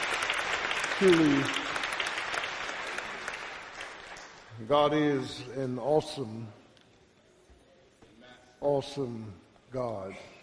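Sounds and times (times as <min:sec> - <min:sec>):
church congregation applauding the choir: 0:00.0 - 0:05.0
speech: 0:01.0 - 0:01.6, 0:04.6 - 0:06.6, 0:08.6 - 0:10.4.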